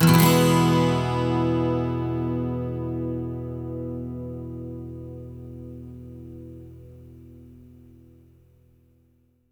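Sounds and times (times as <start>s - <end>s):
12 string electric and acoustic guitar loops in E major: 0.0s - 6.8s.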